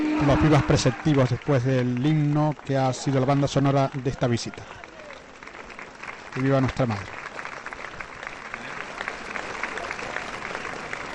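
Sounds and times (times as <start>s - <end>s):
crowd applauding: 0.0s - 11.1s
speech: 0.2s - 4.8s, 6.4s - 7.2s.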